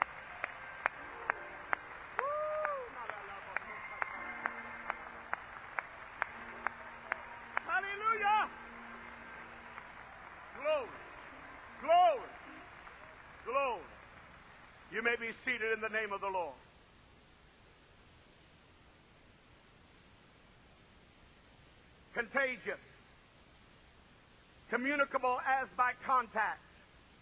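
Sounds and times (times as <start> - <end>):
audience hand clapping in praise: 0.0 - 14.9
speech: 15.0 - 16.6, 22.3 - 22.9, 24.8 - 26.7.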